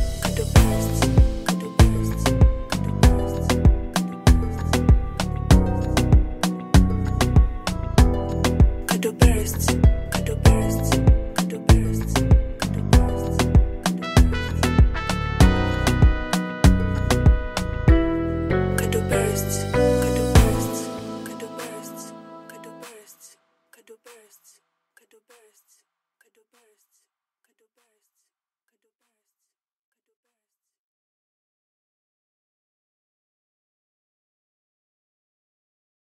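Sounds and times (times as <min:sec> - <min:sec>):
instrumental beat: 0:00.0 - 0:23.1.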